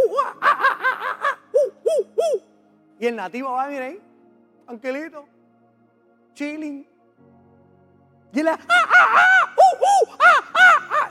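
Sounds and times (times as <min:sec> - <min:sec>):
voice imitating monkey hooting: 0:01.0 - 0:02.5, 0:09.6 - 0:11.0
speech: 0:03.0 - 0:04.1, 0:04.7 - 0:05.4, 0:06.4 - 0:06.9, 0:08.3 - 0:10.2.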